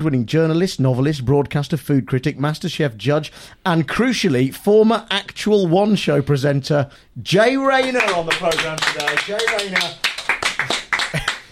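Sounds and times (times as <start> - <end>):
speech: 0.0 - 11.3
scant audience applause: 7.8 - 11.4.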